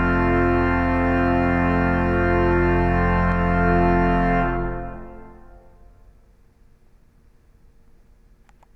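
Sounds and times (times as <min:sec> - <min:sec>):
organ performance: 0:00.0 - 0:05.8.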